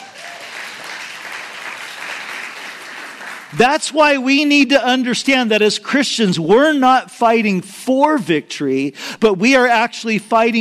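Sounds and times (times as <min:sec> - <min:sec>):
audience clapping: 0:00.0 - 0:04.0
speech: 0:03.5 - 0:10.6.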